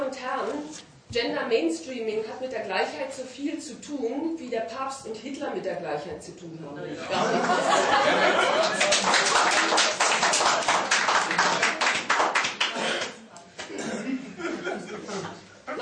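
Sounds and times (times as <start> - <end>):
speech: 0.4 - 10.0
laughter: 7.0 - 11.8, 14.0 - 15.7
audience applause: 7.7 - 13.2.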